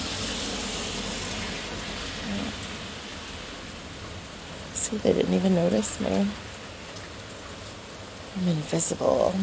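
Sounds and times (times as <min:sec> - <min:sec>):
car passing on wet road: 0:00.0 - 0:04.7
speech: 0:04.9 - 0:06.5, 0:08.4 - 0:09.4.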